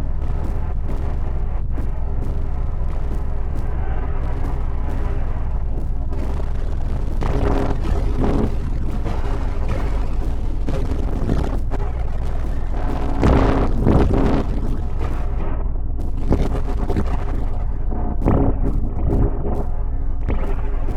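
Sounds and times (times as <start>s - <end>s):
noise session: 0.0s - 20.9s.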